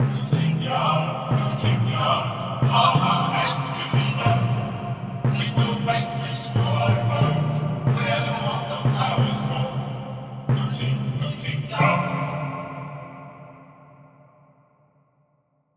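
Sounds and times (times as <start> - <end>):
chanting: 0.0 - 14.1.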